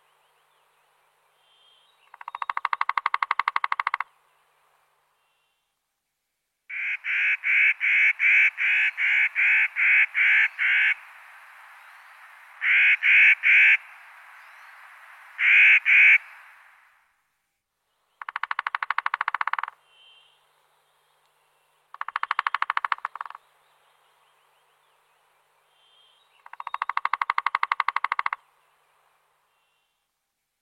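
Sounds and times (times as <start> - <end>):
Three-toed woodpecker drumming: 2.1 - 4.2, 6.7 - 16.4, 18.2 - 19.8, 21.9 - 23.4, 26.4 - 28.5.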